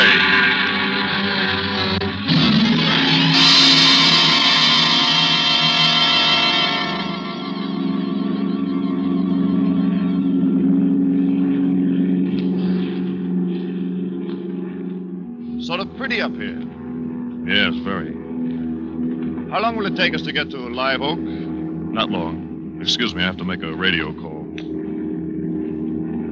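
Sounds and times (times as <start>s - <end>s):
propeller airplane engine roaring at full throttle: 0.0s - 26.3s
speech: 19.6s - 21.3s, 22.0s - 24.8s.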